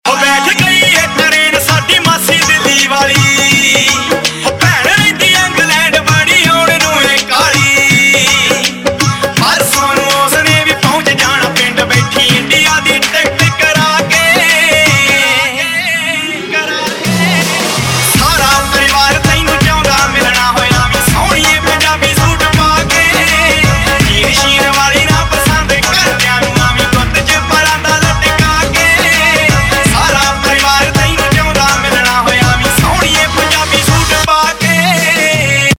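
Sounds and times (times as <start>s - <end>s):
Punjabi pop ringtone: 0.1s - 35.7s.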